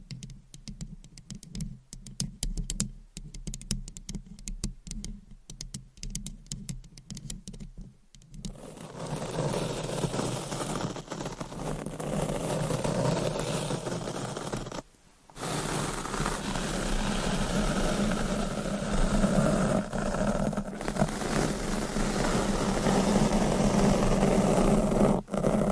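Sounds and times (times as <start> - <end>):
scratching and tapping on a microphone: 0.0 - 8.6
steady rubbing, brushing and massaging: 8.5 - 25.7.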